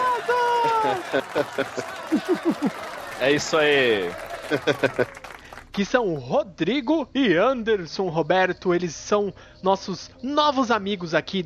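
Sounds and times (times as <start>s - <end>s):
laughter: 0.0s - 5.4s
rhythmic cheering shouts: 0.0s - 5.6s
speech: 0.6s - 11.4s.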